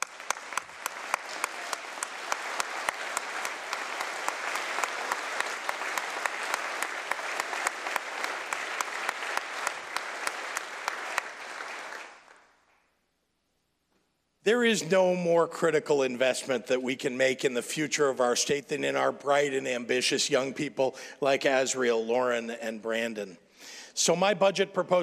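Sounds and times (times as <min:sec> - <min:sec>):
crowd applause: 0:00.0 - 0:12.6
speech: 0:14.5 - 0:25.0.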